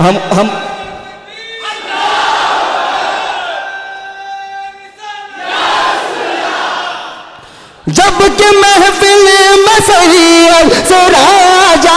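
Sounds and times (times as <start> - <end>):
speech: 0.0 - 0.6, 7.9 - 11.9
crowd at a religious gathering shouting a slogan in unison: 1.6 - 3.8, 5.2 - 7.4.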